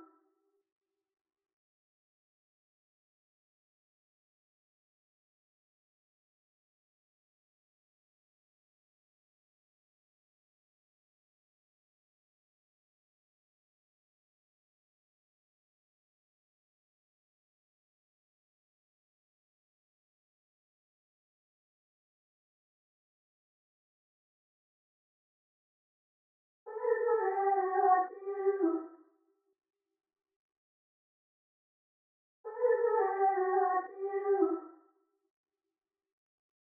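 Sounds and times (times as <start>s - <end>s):
vocals: 26.7s - 28.9s, 32.5s - 34.7s.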